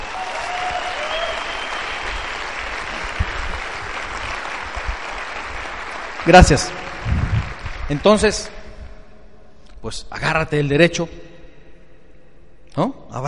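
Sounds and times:
audience applause: 0.0s - 8.4s
speech: 6.2s - 7.2s, 7.9s - 8.6s, 9.8s - 11.2s, 12.8s - 13.2s.

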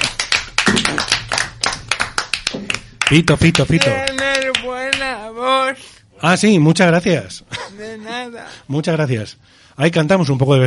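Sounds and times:
small group clapping: 0.0s - 5.3s
speech: 3.1s - 4.3s, 5.0s - 10.6s.

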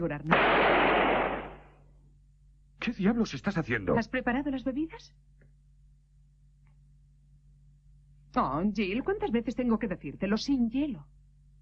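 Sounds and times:
speech: 0.0s - 1.0s, 2.8s - 5.4s, 8.4s - 11.2s
pistol firing blank cartridges: 0.3s - 1.8s.

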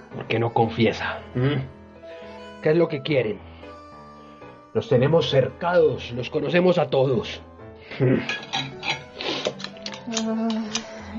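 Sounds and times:
speech: 0.2s - 1.8s, 2.6s - 3.5s, 4.7s - 8.7s, 10.1s - 11.1s
knife clinking against dishes: 8.3s - 10.0s.

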